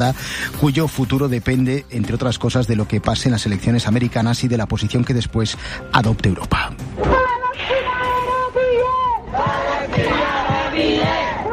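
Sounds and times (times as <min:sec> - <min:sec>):
speech: 0:00.0 - 0:07.1
crowd of young people shouting and chanting at a street protest: 0:07.0 - 0:11.5
rhythmic thumps or claps: 0:08.6 - 0:11.5.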